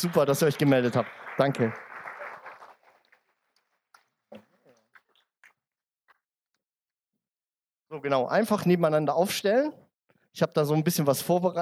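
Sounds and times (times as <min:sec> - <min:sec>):
speech: 0:00.0 - 0:01.9, 0:07.9 - 0:09.8, 0:10.4 - 0:11.6
audience applause: 0:00.0 - 0:03.7.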